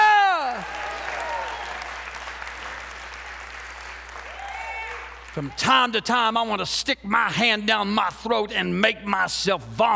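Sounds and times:
audience hand clapping: 0.0 - 5.8
speech: 5.4 - 9.9.

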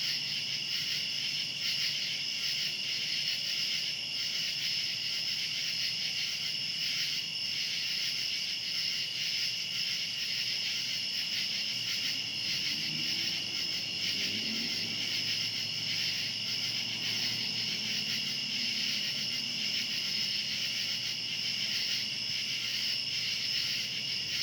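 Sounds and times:
cicadas buzzing: 0.1 - 24.4.

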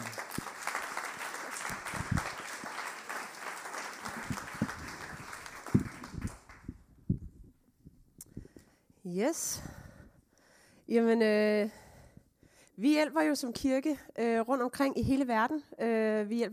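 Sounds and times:
audience applause: 0.0 - 6.7
speech: 9.1 - 9.7, 10.9 - 11.8, 12.8 - 16.5.

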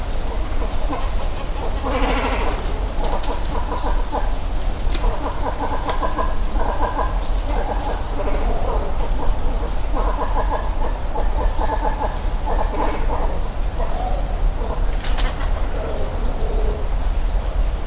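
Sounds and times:
great cormorants at a nesting colony croaking: 0.0 - 17.0.

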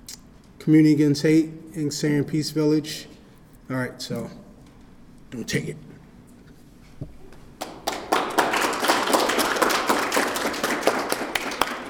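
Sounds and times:
speech: 0.7 - 3.1, 3.7 - 4.4, 5.3 - 5.9
audience applause: 7.6 - 11.8.

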